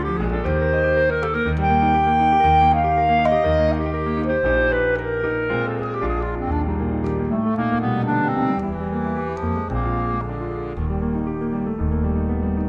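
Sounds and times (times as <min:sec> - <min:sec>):
clarinet playing a sonata: 0:00.0 - 0:12.5.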